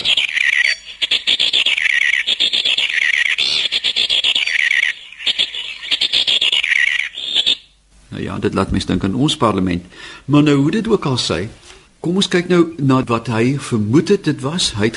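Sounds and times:
several male birds squawking harshly at one another: 0.0 - 7.8
speech: 8.3 - 14.9.

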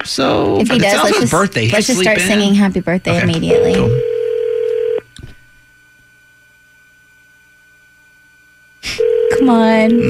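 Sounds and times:
speech: 0.1 - 4.1, 9.5 - 10.0
phone call being dialed: 3.5 - 5.0, 9.0 - 10.0.

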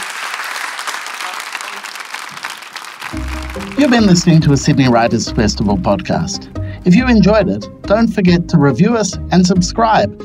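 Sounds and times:
audience applause: 0.0 - 5.0
speech: 3.1 - 10.2.

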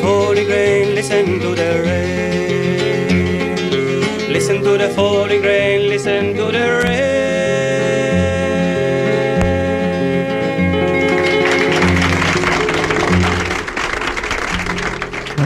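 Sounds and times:
live concert music: 0.0 - 15.4
speech: 0.5 - 2.3, 4.4 - 8.0
audience applause in a live concert recording: 10.6 - 15.4.

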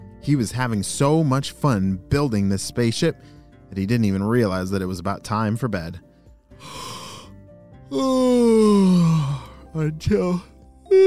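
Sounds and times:
speech: 0.2 - 6.9, 7.9 - 11.0
exaggerated yawning: 7.9 - 9.6, 10.9 - 11.0.

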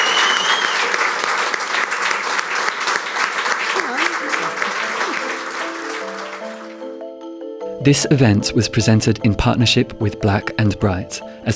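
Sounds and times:
audience applause for panellists: 0.0 - 7.0
speech: 7.8 - 11.5.

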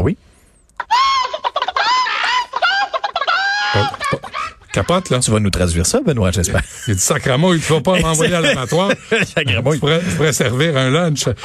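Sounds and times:
speech: 0.0 - 1.2, 4.8 - 11.4
laughter: 0.8 - 11.4
chicken clucking and squawking: 1.2 - 4.3.

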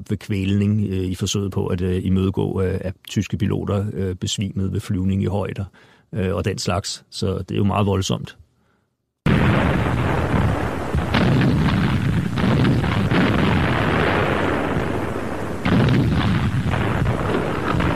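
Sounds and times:
speech: 0.0 - 8.4
continuous loud roar: 9.3 - 17.9
anti-aircraft flak guns firing: 10.0 - 17.9.

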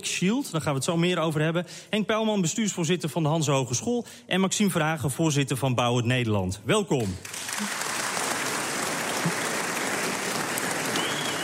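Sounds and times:
speech: 0.0 - 7.8
applause from a full hall: 7.2 - 11.4.

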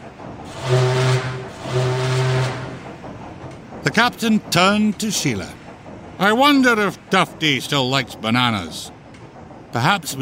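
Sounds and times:
quick toot of a ship's horn: 0.5 - 2.8
speech: 4.0 - 5.6, 6.2 - 9.0, 9.7 - 10.2.

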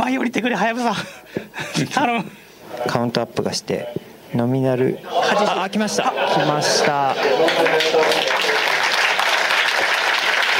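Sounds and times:
speech: 0.1 - 8.4
laughter: 5.0 - 8.9
applause: 7.2 - 10.5.

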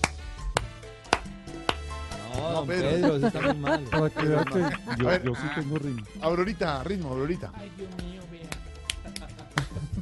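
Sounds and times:
rhythmic hand clapping: 0.0 - 6.6, 8.4 - 10.0
speech: 2.5 - 8.1
laughter: 2.8 - 6.0, 9.6 - 10.0.

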